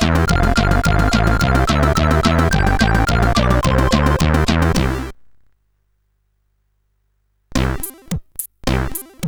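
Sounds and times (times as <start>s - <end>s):
chiptune melody on CSG8580R5 chip: 0.0s - 5.1s.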